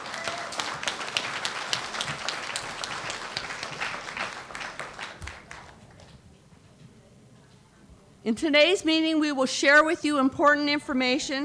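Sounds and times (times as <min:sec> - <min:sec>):
crowd applause: 0:00.0 - 0:06.2
speech: 0:08.2 - 0:11.4.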